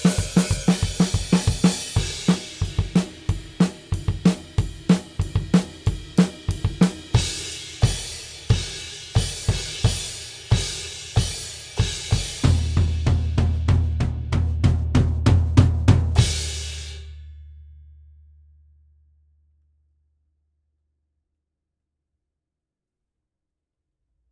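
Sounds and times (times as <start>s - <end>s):
drums: 0.0s - 17.6s.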